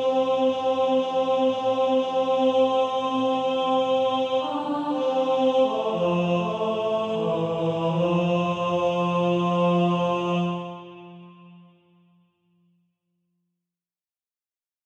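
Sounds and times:
male choir singing: 0:00.0 - 0:11.7.

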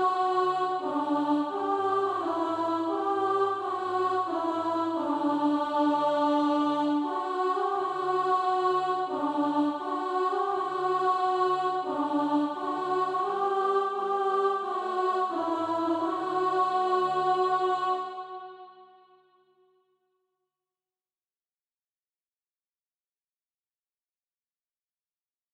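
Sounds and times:
alto voice singing: 0:00.0 - 0:18.8.

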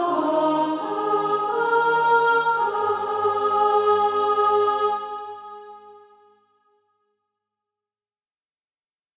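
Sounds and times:
soprano singing SATB practice music: 0:00.0 - 0:05.9.

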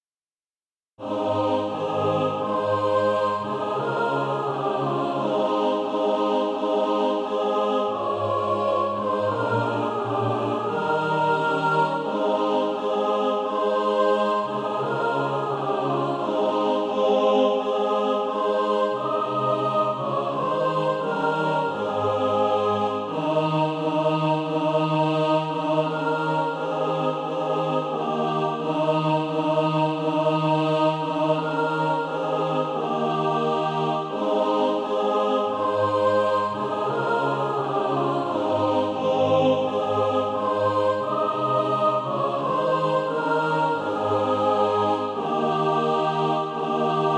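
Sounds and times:
mixed SATB choir practice music: 0:01.0 - 0:47.1.

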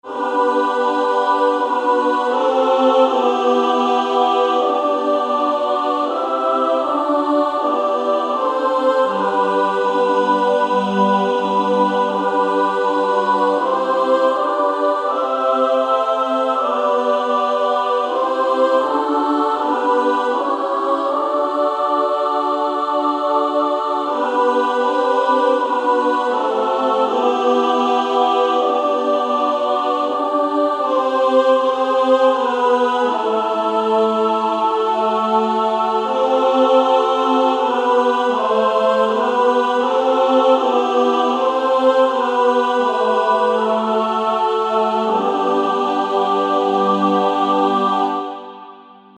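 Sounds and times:
female SSAA choir singing: 0:00.0 - 0:49.1.

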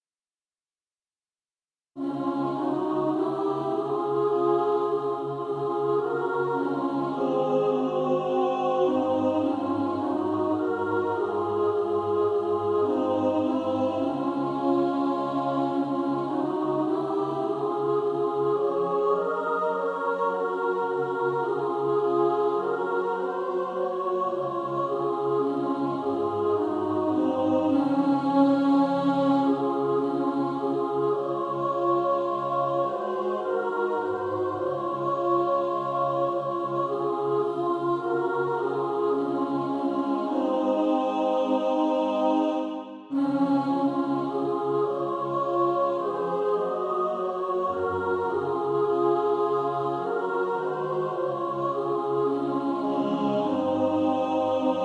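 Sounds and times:
hymn mixed: 0:02.0 - 0:54.8.

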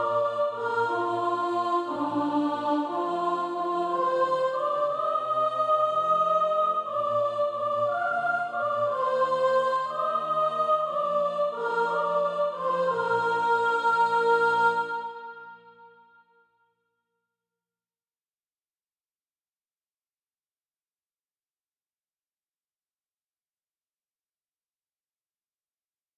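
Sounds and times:
soprano singing practice music: 0:00.0 - 0:15.8.

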